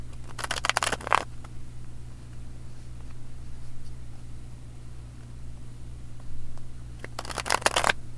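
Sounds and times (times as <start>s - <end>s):
cards being shuffled: 0.1s - 1.3s, 7.0s - 8.0s.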